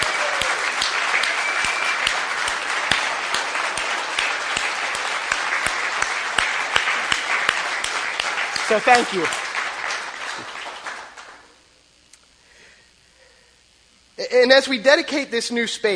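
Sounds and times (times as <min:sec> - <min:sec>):
audience applause: 0:00.0 - 0:11.6
speech: 0:08.7 - 0:09.4, 0:14.3 - 0:15.9.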